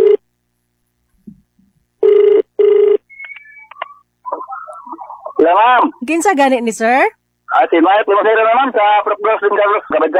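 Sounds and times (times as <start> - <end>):
telephone ringing on an outgoing call: 2.0 - 3.8
electronic beeps as the line connects: 3.1 - 4.0
speech: 5.5 - 10.1.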